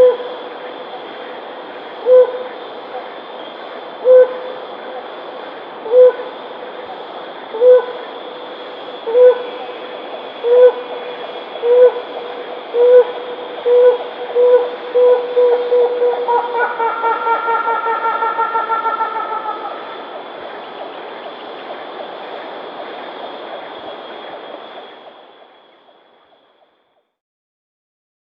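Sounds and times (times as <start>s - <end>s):
Helmeted hornbill calling with short clear hoots: 0.0s - 0.4s, 2.0s - 2.6s, 4.0s - 4.6s, 5.8s - 6.4s, 7.5s - 9.8s, 10.4s - 20.1s.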